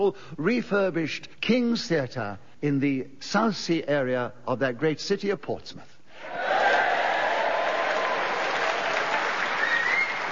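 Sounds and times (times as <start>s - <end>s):
speech: 0.0s - 6.4s
theatre audience applauding: 6.5s - 10.3s.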